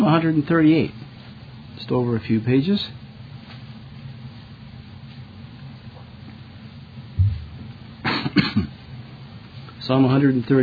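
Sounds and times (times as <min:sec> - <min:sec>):
speech: 0:00.1 - 0:01.0, 0:01.8 - 0:03.0, 0:09.9 - 0:10.6
coughing: 0:08.0 - 0:08.8.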